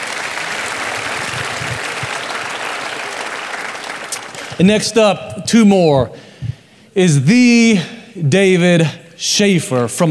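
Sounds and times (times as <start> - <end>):
audience applause: 0.0 - 4.6
speech: 4.6 - 6.3, 7.0 - 10.0.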